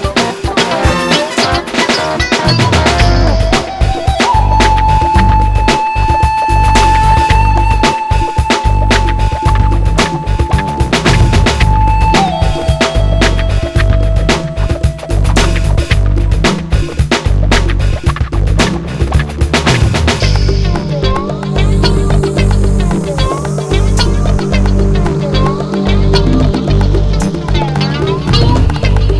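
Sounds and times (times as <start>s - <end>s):
music: 0.0s - 29.1s.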